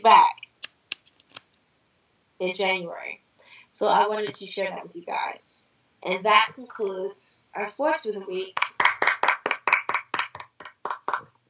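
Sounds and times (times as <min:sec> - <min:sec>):
speech: 0:00.0 - 0:00.4, 0:02.4 - 0:03.2, 0:03.8 - 0:08.7
one person clapping: 0:08.6 - 0:11.3.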